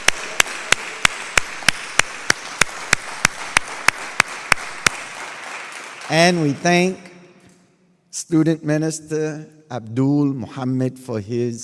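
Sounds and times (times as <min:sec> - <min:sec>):
rhythmic clapping: 0:00.0 - 0:07.6
speech: 0:06.1 - 0:07.1, 0:08.2 - 0:11.6.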